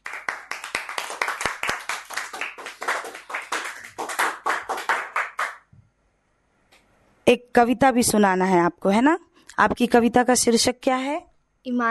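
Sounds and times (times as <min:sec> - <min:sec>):
group clapping loudly: 0:00.0 - 0:05.7
speech: 0:07.3 - 0:11.8.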